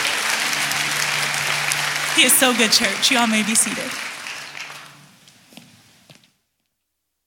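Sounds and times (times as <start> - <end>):
audience hand clapping: 0.0 - 5.4
speech: 2.2 - 4.1.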